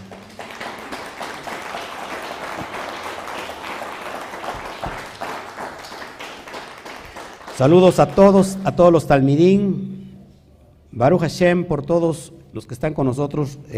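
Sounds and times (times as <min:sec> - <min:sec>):
strong applause: 0:00.0 - 0:08.5
speech: 0:07.6 - 0:09.9, 0:10.9 - 0:13.7.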